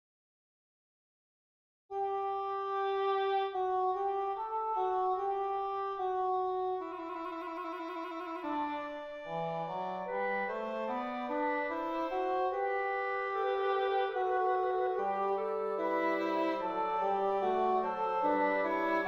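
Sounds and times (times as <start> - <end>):
fugue in G major: 1.9 - 19.0.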